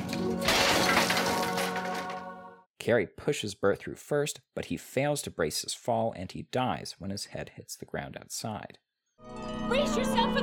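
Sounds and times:
air conditioner kicked out of window, breaking and shattering: 0.0 - 2.4
speech: 2.8 - 10.4.

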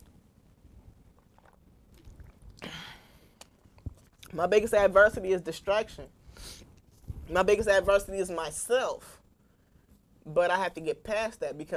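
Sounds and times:
person sipping water: 1.1 - 4.3
speech: 4.4 - 6.6, 7.3 - 9.2, 10.3 - 11.7.

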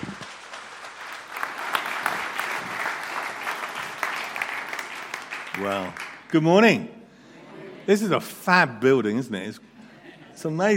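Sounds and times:
audience applause welcoming a guest speaker at a church gathering: 0.0 - 6.4
speech: 5.6 - 7.0, 7.9 - 9.7, 10.4 - 10.7.

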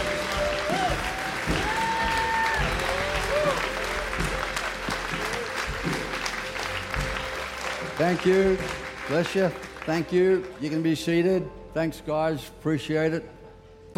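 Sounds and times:
audience applause: 0.0 - 10.8
speech: 8.0 - 13.4.

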